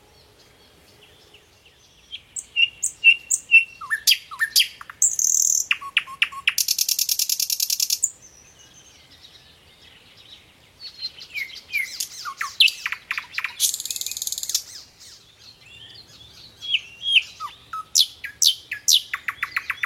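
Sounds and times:
Thrush nightingale song: 0.0s - 19.8s.

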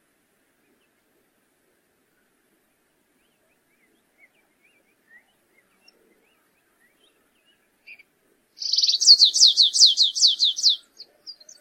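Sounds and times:
stripe-tailed yellow finch song with buzzing trill and down-slurred notes: 8.6s - 10.8s.

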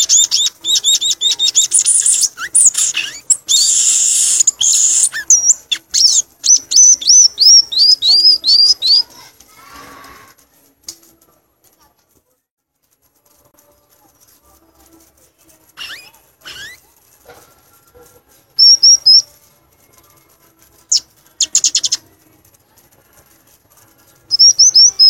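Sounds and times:
violaceous euphonia song: 0.0s - 9.4s, 15.8s - 16.9s, 18.6s - 19.4s, 20.8s - 22.2s, 24.0s - 25.0s.

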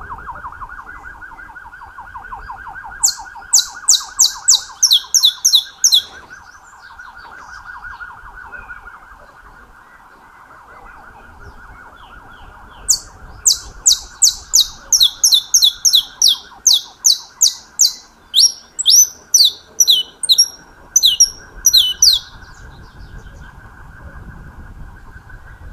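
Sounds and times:
wavering siren-like tone: 0.0s - 25.7s
saffron finch sharp falling chips: 3.1s - 6.6s, 12.9s - 22.4s.

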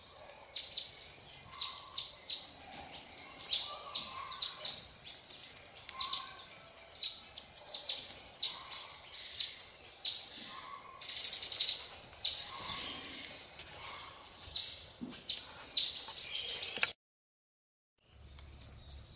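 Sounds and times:
red-necked tanager singing: 0.0s - 16.9s, 18.0s - 19.1s.

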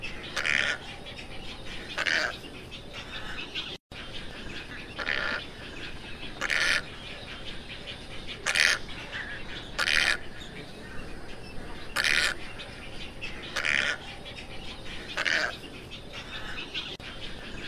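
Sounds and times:
tricolored heron squawks: 0.0s - 1.0s, 1.7s - 3.7s, 4.6s - 11.0s, 11.7s - 12.6s, 13.2s - 14.2s, 14.8s - 17.6s.

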